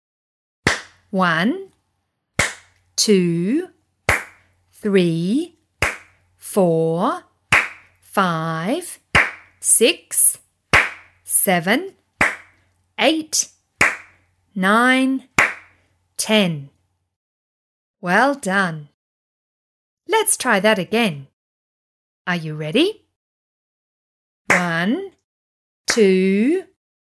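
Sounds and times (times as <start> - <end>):
hands clapping in rhythm: 0.7 - 1.0, 2.4 - 2.7, 4.1 - 4.4, 5.8 - 6.2, 7.5 - 7.9, 9.2 - 9.5, 10.8 - 11.1, 12.2 - 12.5, 13.8 - 14.2, 15.4 - 15.7, 24.5 - 24.9
speech: 1.1 - 1.7, 3.0 - 3.8, 4.8 - 5.6, 6.5 - 7.3, 8.2 - 9.0, 9.6 - 10.4, 11.4 - 12.0, 13.0 - 13.5, 14.6 - 15.3, 16.2 - 16.8, 18.0 - 18.9, 20.1 - 21.3, 22.3 - 23.0, 24.5 - 25.1, 26.0 - 26.7.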